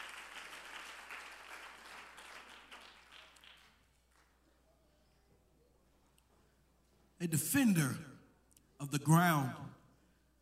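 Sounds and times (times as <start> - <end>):
audience clapping: 0.0 - 4.4
speech: 7.2 - 8.1, 8.8 - 9.8.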